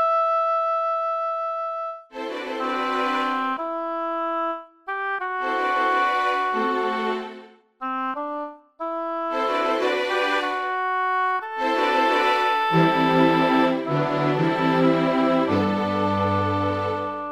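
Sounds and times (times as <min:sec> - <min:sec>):
oboe: 0:00.0 - 0:17.3
strings: 0:02.1 - 0:03.8, 0:05.2 - 0:07.6, 0:09.3 - 0:17.3.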